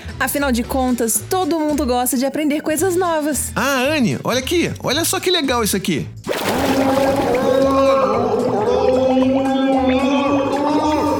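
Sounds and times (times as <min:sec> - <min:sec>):
speech: 0:00.2 - 0:07.3
person trying to talk underwater, voice gurgling: 0:06.4 - 0:11.1.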